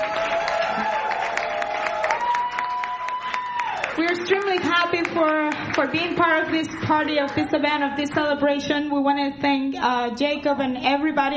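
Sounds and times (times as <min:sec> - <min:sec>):
round of applause: 0:00.0 - 0:08.2
speech: 0:04.0 - 0:11.3.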